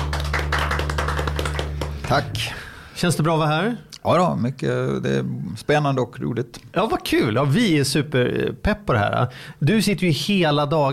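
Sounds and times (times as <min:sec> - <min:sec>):
applause: 0:00.0 - 0:02.6
speech: 0:02.1 - 0:10.9.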